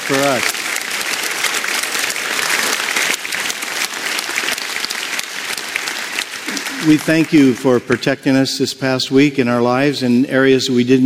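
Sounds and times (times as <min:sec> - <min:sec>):
audience applause: 0:00.0 - 0:08.4
speech: 0:00.1 - 0:00.6, 0:06.8 - 0:11.0.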